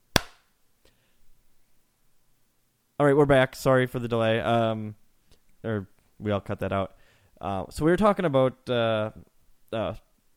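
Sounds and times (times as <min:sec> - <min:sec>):
fainter snap: 0:00.1 - 0:00.5
hand clap for audio sync: 0:00.2 - 0:00.4
speech: 0:03.0 - 0:05.0, 0:05.6 - 0:10.1.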